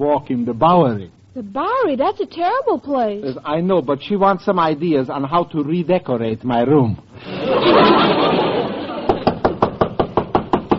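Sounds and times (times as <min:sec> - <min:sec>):
speech: 0:00.0 - 0:08.4
laughter: 0:07.2 - 0:09.4
knocking on apartment door: 0:09.1 - 0:10.7.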